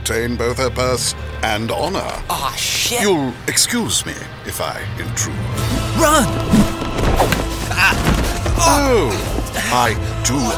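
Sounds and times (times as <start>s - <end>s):
speech: 0.0s - 10.5s
men tripping over a walking cane and falling with thuds: 6.3s - 9.6s.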